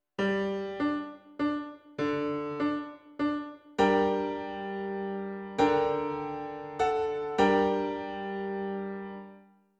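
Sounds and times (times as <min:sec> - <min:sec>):
piano: 0:00.0 - 0:09.7.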